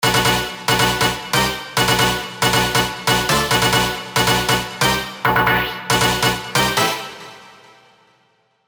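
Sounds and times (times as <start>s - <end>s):
big room techno drops: 0.0s - 6.7s.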